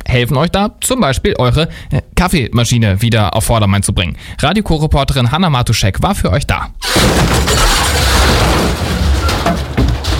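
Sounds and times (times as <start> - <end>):
speech: 0.1 - 9.0
old printer breaking apart: 6.8 - 10.1.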